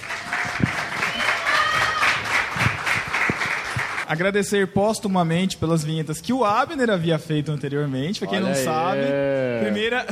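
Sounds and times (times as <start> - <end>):
faint high whistles and cheers: 0.0 - 3.0
crowd applause: 0.0 - 4.1
speech: 4.1 - 10.1
laughter: 9.1 - 10.1.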